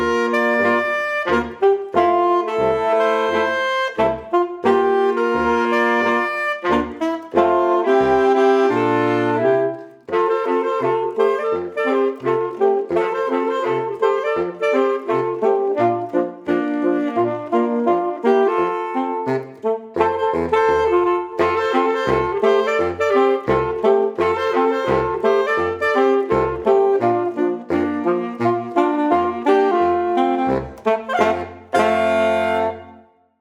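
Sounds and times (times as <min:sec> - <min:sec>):
saxophone ensemble: 0:00.0 - 0:33.1.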